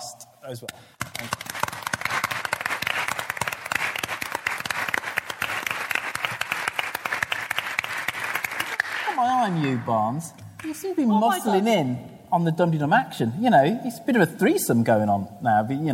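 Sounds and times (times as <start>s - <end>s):
speech: 0.4s - 1.6s, 9.2s - 15.9s
audience applause: 1.0s - 9.9s.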